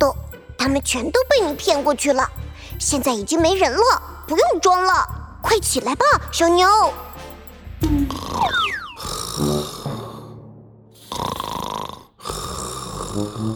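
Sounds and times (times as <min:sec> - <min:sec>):
speech: 0:00.0 - 0:07.1, 0:07.9 - 0:08.7
snoring: 0:08.1 - 0:09.9, 0:11.0 - 0:13.5.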